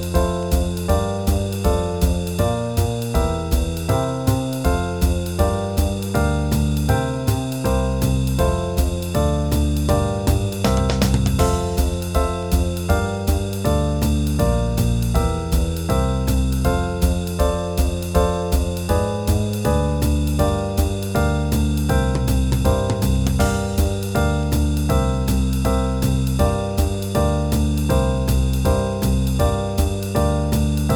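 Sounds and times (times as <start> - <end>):
backing track in F major at 160 bpm: 0.0 - 30.9.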